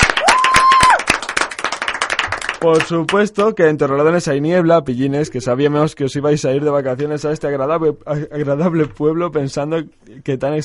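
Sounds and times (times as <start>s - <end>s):
cheering: 0.0s - 1.2s
applause: 0.0s - 3.6s
speech: 2.6s - 10.6s.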